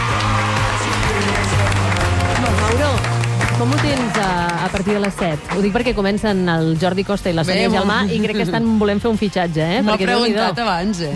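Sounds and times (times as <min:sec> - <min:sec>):
cheering voices: 0:00.0 - 0:02.8
audience applause: 0:00.0 - 0:05.9
speech: 0:03.6 - 0:11.1.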